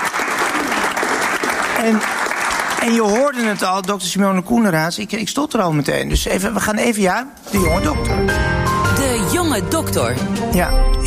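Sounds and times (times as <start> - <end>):
audience applause: 0.0 - 4.1
speech: 1.8 - 2.2, 2.8 - 8.7, 9.3 - 11.0.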